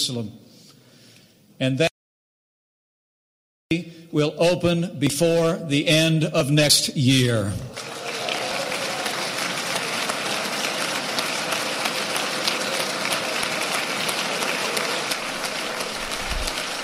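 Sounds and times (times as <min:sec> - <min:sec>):
speech: 0:00.0 - 0:00.5, 0:01.6 - 0:02.0, 0:03.7 - 0:08.0
sustained applause: 0:07.7 - 0:16.8.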